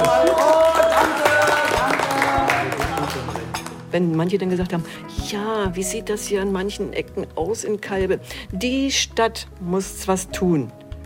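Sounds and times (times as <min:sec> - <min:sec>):
overlapping voices and chatter: 0:00.0 - 0:03.7
applause: 0:00.0 - 0:03.8
speech: 0:03.9 - 0:10.8.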